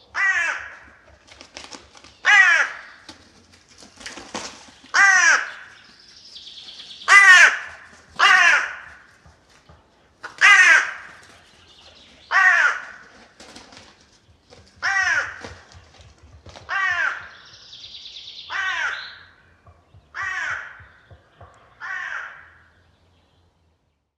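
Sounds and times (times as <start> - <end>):
hooded crow Corvus cornix calling: 0.1 - 1.1, 2.2 - 3.1, 4.9 - 5.9, 7.0 - 9.3, 10.2 - 11.4, 12.2 - 13.1, 14.8 - 15.7, 16.6 - 17.8, 18.4 - 19.5, 20.1 - 22.8.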